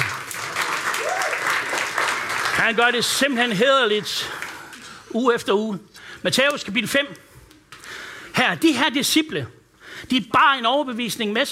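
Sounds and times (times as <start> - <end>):
audience applause: 0.0 - 4.8
speech: 2.6 - 4.4, 5.1 - 7.3, 8.4 - 11.5.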